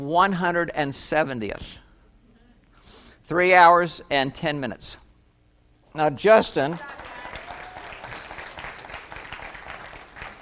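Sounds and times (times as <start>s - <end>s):
speech: 0.0s - 1.8s, 3.3s - 5.0s, 6.0s - 7.0s
audience clapping after a triathlon finish time is announced: 6.7s - 10.3s.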